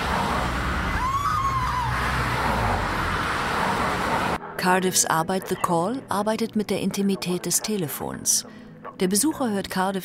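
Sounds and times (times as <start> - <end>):
city street traffic: 0.0 - 4.4
speech: 4.6 - 10.0.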